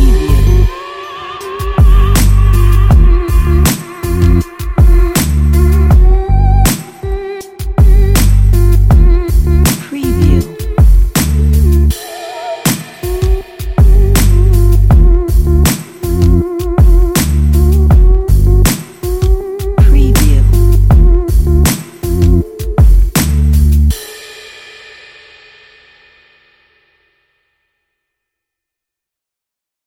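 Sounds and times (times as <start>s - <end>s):
abstract trip hop music: 0.0s - 23.8s.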